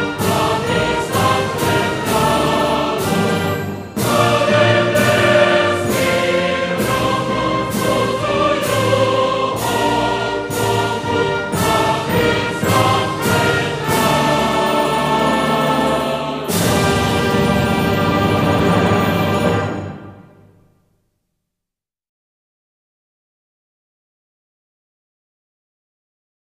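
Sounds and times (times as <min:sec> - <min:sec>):
national anthem: 0:00.0 - 0:20.6.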